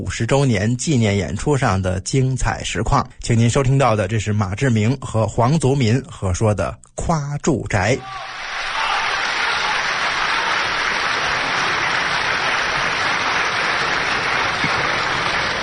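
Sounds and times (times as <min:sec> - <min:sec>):
speech: 0:00.0 - 0:08.8
large audience applause at a live show: 0:08.1 - 0:15.6.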